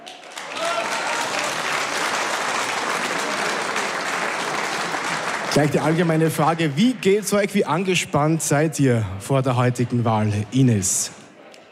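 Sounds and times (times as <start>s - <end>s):
audience applause for candidates: 0.0s - 8.4s
speech: 5.5s - 11.2s.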